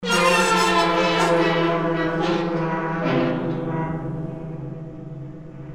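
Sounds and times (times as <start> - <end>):
metallic scream: 0.0 - 4.4.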